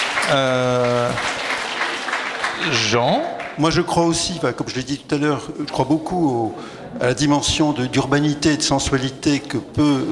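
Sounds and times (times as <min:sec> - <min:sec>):
audience applause at a public discussion on city life: 0:00.0 - 0:03.8
speech: 0:00.3 - 0:01.3, 0:02.6 - 0:10.0.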